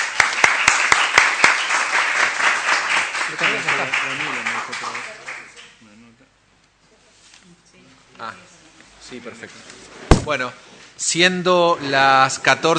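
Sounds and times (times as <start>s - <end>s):
applause: 0.0s - 5.8s
speech: 3.6s - 5.2s, 9.1s - 12.7s.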